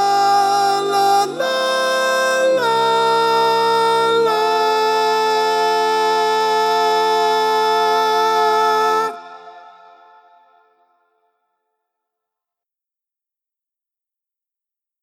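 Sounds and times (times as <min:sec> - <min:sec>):
tenor singing in mono: 0:00.0 - 0:10.8.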